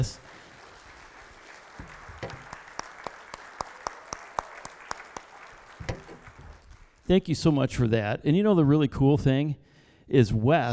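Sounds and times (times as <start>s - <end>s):
speech: 0.0s - 0.2s, 7.1s - 10.7s
audience applause: 0.0s - 7.0s.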